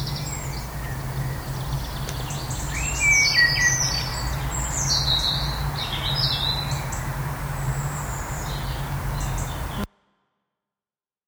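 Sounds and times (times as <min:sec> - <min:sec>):
blackbird singing: 0:00.0 - 0:09.9.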